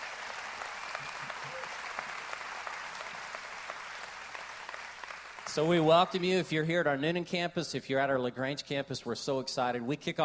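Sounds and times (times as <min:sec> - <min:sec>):
audience applause: 0:00.0 - 0:06.4
speech: 0:05.6 - 0:10.2.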